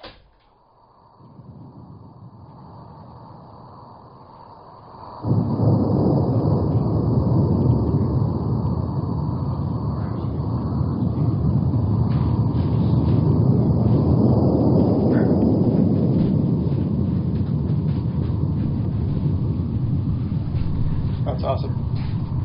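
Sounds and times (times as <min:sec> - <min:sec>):
small undersea earthquake rumble off the coast of Washington or British Columbia: 0:01.0 - 0:22.4.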